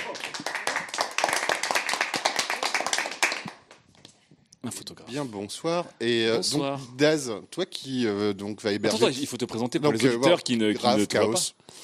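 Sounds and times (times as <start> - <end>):
people clapping hands: 0.0 - 4.2
speech: 4.6 - 11.8.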